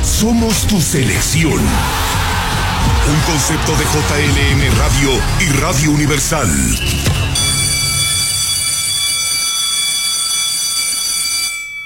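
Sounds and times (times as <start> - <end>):
speech: 0.2 - 2.2, 3.1 - 7.4
loud electric school bell ringing: 7.4 - 11.8.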